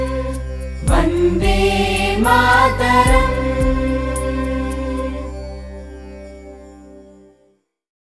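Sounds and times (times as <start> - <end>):
Indian patriotic national song: 0.0 - 5.6.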